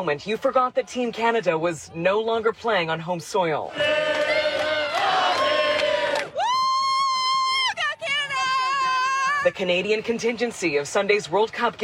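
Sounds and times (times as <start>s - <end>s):
speech: 0.0s - 4.3s, 9.4s - 11.8s
crowd of soccer fans cheering and shouting: 3.7s - 9.6s.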